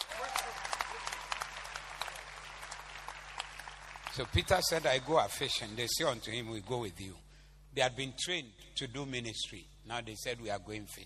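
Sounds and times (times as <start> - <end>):
audience clapping: 0.0 - 5.7
low steady hum: 0.0 - 11.0
speech: 4.2 - 11.0.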